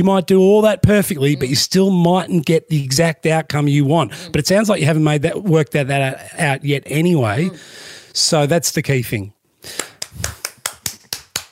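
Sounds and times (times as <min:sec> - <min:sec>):
speech: 0:00.0 - 0:10.3
hand clapping: 0:09.7 - 0:11.5.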